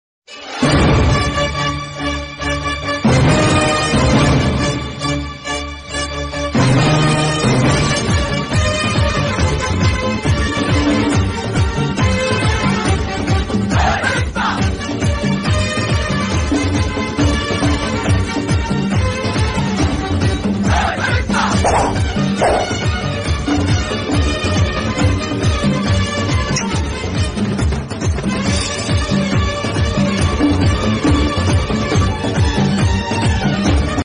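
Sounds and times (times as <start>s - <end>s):
mass film background score ringtone: 0.3s - 34.0s.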